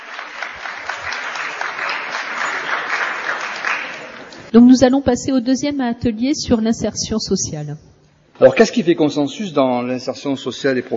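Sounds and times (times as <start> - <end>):
audience applause: 0.0 - 4.4
speech: 4.5 - 10.9.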